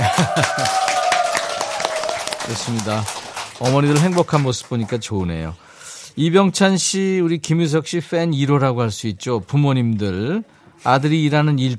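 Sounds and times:
laughter: 0.0s - 1.1s
audience clapping: 0.0s - 5.2s
speech: 2.6s - 11.7s.

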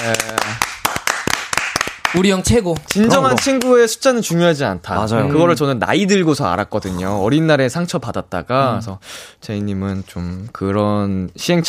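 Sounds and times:
speech: 0.0s - 0.7s, 2.1s - 11.6s
short round of applause: 0.0s - 3.9s
person vocalizing: 3.0s - 3.4s.

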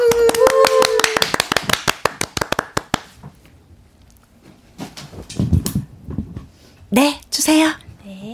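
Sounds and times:
audience applause: 0.0s - 3.2s
speech: 7.0s - 7.6s.

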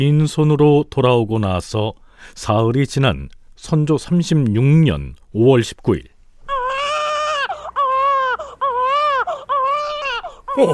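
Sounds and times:
speech: 0.0s - 6.1s, 10.6s - 10.7s
newborn baby crying: 6.5s - 10.7s.

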